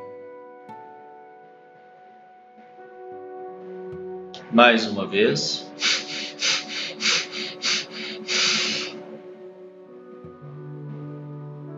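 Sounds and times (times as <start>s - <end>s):
soft sustained music: 0.0s - 11.7s
speech: 4.5s - 6.6s
person exhaling during a guided breathing exercise: 5.6s - 9.0s.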